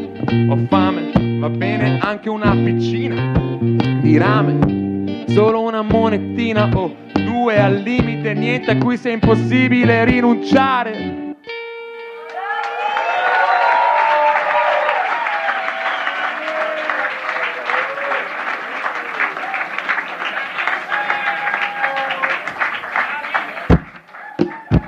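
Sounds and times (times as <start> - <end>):
speech: 0.3 - 11.2
audience applause after a live song: 12.2 - 24.8.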